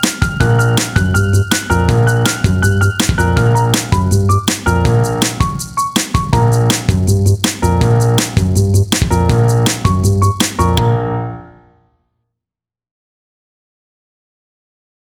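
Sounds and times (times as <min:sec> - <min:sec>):
spy jazz music: 0:00.0 - 0:11.7.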